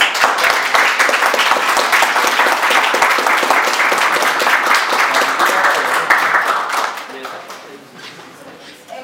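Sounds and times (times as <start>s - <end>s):
applause closing a master class: 0.0s - 7.7s.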